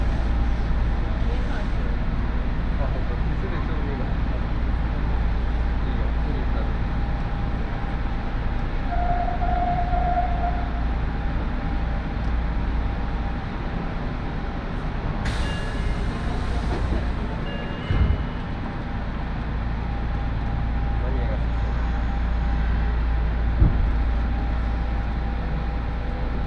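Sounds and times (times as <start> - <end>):
train rumble on the Aonami and Higashiyama lines: 0.0 - 26.4
brief tone: 8.9 - 10.9, 17.4 - 18.5.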